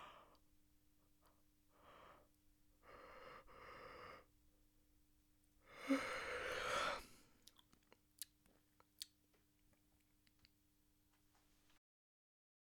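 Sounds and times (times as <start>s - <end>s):
person yawning: 5.8s - 7.0s.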